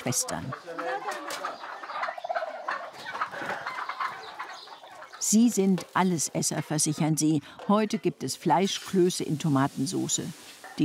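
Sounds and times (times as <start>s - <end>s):
speech: 0.0s - 1.2s, 5.3s - 10.8s
flock of turkeys gobbling: 0.0s - 8.2s, 10.4s - 10.8s
chickens clucking: 0.0s - 10.8s.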